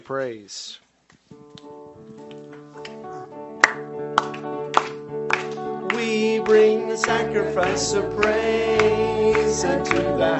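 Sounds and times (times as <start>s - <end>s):
speech: 0.1s - 0.8s, 6.1s - 10.3s
audience clapping along as percussion: 2.2s - 10.3s.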